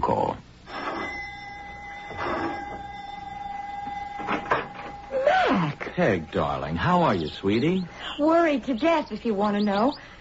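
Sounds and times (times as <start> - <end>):
doorbell being pressed and ringing: 0.7 - 7.6
speech: 6.0 - 10.2.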